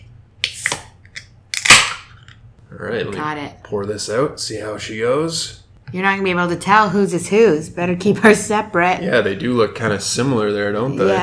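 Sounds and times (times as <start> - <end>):
beer bottle popping open with a fizzing hiss: 0.4 - 2.1
speech: 2.7 - 11.2.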